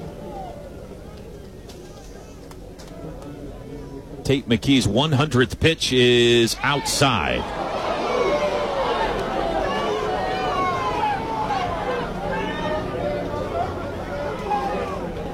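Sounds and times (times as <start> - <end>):
large baseball crowd shouting: 0.0 - 2.4, 6.2 - 15.3
speech: 4.3 - 7.6.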